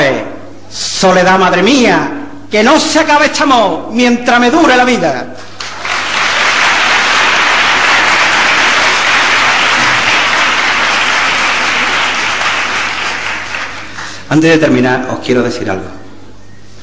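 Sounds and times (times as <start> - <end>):
speech: 1.0 - 5.5, 14.3 - 16.0
audience applause after a song: 5.5 - 14.3.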